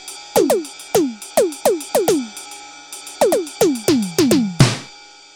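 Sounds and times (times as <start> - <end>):
Roland U-220 synthesizer electric factory patch: 0.4 - 2.3, 3.2 - 4.6.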